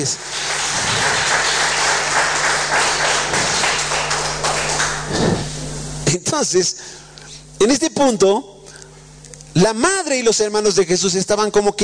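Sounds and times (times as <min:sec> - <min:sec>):
speech: 0:00.0 - 0:01.1, 0:06.1 - 0:07.0, 0:07.6 - 0:08.6, 0:09.6 - 0:11.8
audience applauding: 0:00.0 - 0:05.5.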